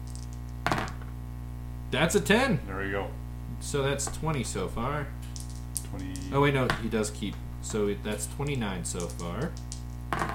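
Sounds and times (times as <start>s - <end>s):
two dice clattering across a tabletop: 0.0s - 1.0s, 5.3s - 5.9s, 8.8s - 10.3s
steady low hum: 0.0s - 10.3s
speech: 1.9s - 5.3s, 5.9s - 10.2s.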